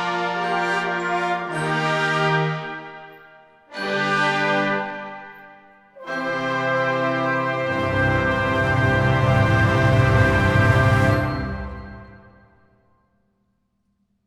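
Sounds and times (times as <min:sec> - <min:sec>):
wind band playing: 0:00.0 - 0:03.2, 0:03.8 - 0:05.4, 0:06.0 - 0:12.4.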